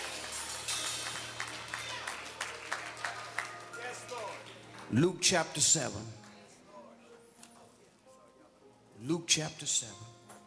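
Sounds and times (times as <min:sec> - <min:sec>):
audience clapping hands: 0:00.0 - 0:05.4
speech: 0:04.9 - 0:06.2, 0:09.0 - 0:10.2.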